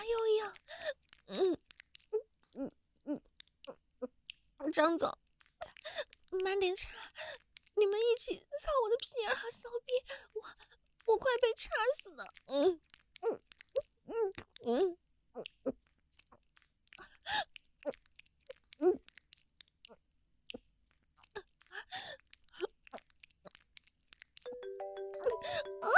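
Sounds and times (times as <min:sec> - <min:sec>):
vocal sounds and breaths: 0:00.4 - 0:04.5, 0:05.5 - 0:07.7, 0:10.0 - 0:11.0, 0:12.3 - 0:23.5, 0:24.8 - 0:25.9
speech: 0:04.8 - 0:05.2, 0:06.3 - 0:07.1, 0:07.8 - 0:10.3, 0:11.1 - 0:13.4, 0:14.2 - 0:15.0
phone ringing with a bright electronic ringtone: 0:24.5 - 0:25.9.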